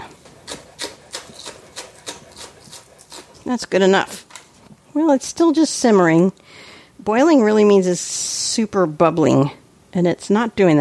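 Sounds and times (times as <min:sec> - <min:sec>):
knife chopping food on cutting board: 0:00.5 - 0:03.3
speech: 0:03.4 - 0:04.2, 0:05.0 - 0:06.4, 0:07.0 - 0:10.8.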